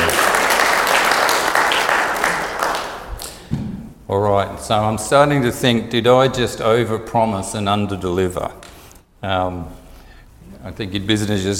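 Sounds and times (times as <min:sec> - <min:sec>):
audience round of applause: 0:00.0 - 0:03.4
speech: 0:04.1 - 0:09.8, 0:10.6 - 0:11.5.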